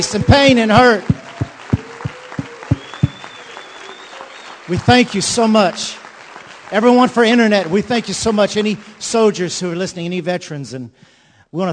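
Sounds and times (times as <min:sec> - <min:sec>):
speech: 0:00.0 - 0:01.2, 0:04.7 - 0:06.0, 0:06.7 - 0:11.7
louder evenly spaced claps near the microphone: 0:00.0 - 0:09.2
audience applause: 0:00.0 - 0:09.4.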